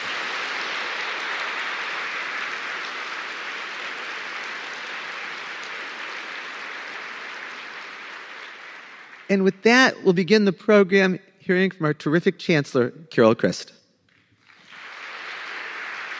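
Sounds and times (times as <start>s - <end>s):
applause: 0.0s - 10.0s, 14.1s - 16.1s
speech: 9.3s - 13.8s.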